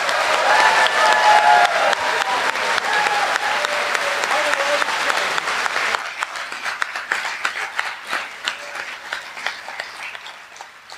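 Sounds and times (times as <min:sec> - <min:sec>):
whistles and cheers: 0:00.0 - 0:04.8
crowd applause: 0:00.0 - 0:10.9.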